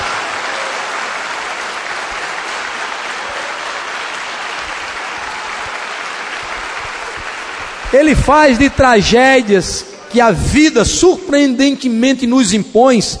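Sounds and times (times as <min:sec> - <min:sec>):
audience applauding: 0:00.0 - 0:08.9
speech: 0:07.9 - 0:13.1.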